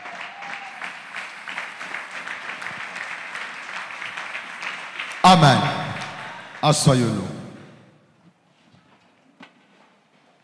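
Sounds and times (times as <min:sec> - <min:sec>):
church congregation applauding to acclaim the word of God: 0:00.0 - 0:07.8
speech: 0:05.2 - 0:05.7, 0:06.6 - 0:07.4.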